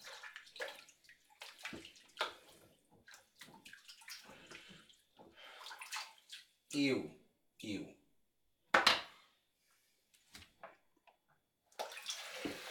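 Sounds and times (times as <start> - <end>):
water sloshing and splashing in a bathtub: 0.0 - 6.7, 11.7 - 12.6
speech: 6.7 - 8.0.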